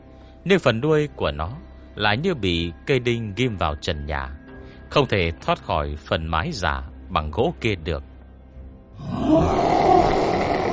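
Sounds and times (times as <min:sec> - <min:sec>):
speech: 0:00.4 - 0:08.1, 0:09.0 - 0:09.8
beast roaring angrily: 0:09.0 - 0:10.7.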